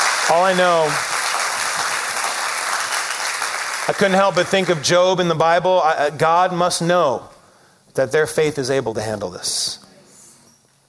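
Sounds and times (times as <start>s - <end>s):
church congregation applauding: 0.0s - 5.4s
speech: 0.3s - 1.1s, 3.9s - 7.3s, 8.0s - 9.8s.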